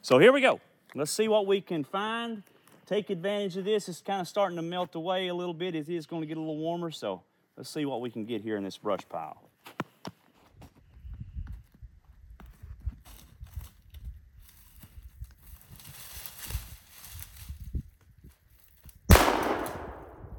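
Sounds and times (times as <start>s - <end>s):
speech: 0.0s - 9.8s
rustling and shuffling steps in the brush: 12.4s - 19.0s
gunshot while hunting at a brush pile: 19.1s - 20.3s.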